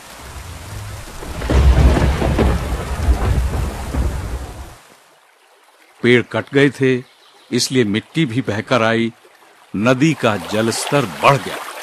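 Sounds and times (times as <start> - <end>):
thunder: 0.0 - 4.8
heavy rain: 0.0 - 5.0
speech: 6.0 - 11.6.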